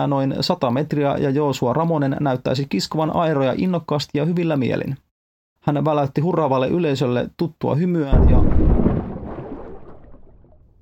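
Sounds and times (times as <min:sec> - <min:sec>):
speech: 0:00.0 - 0:05.0, 0:05.6 - 0:08.6
huge boulder crashing down and sinking a boat: 0:08.1 - 0:10.8
splash of sinking boat: 0:08.1 - 0:10.8.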